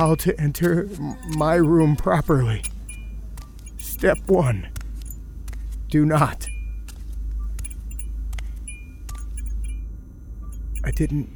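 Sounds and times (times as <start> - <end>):
speech: 0.0 - 2.7, 4.0 - 4.8, 5.9 - 6.5, 10.8 - 11.3
keys jingling: 0.0 - 5.2, 6.2 - 6.9, 7.6 - 9.9, 10.5 - 11.1.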